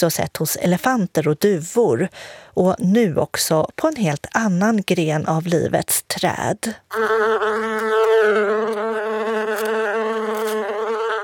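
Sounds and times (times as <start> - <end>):
speech: 0.0 - 9.0
bumblebee buzzing: 6.9 - 11.2.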